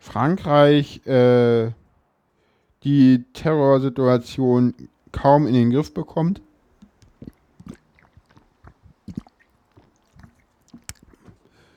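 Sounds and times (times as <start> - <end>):
speech: 0.1 - 1.8, 2.8 - 6.5
wet mouth clicks, sips and swallowing noises: 6.6 - 11.7
person drinking: 6.7 - 11.7.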